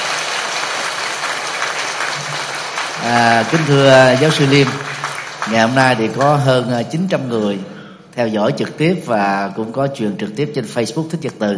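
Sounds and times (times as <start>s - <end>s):
audience applause: 0.0s - 6.7s
speech: 3.0s - 4.9s, 5.5s - 11.5s.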